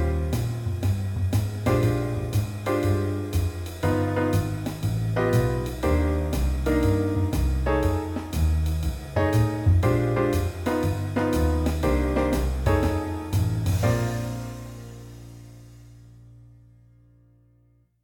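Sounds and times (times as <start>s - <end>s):
blues music in B flat at 120 bpm: 0.0s - 16.9s.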